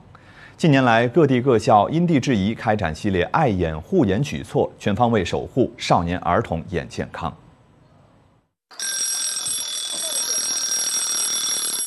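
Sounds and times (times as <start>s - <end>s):
speech: 0.6s - 7.4s
timer alarm ringing: 8.7s - 11.8s.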